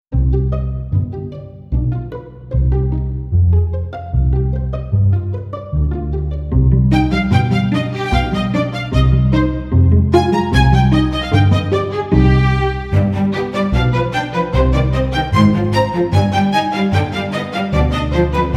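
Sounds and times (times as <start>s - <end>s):
quirky music: 0.1s - 18.5s.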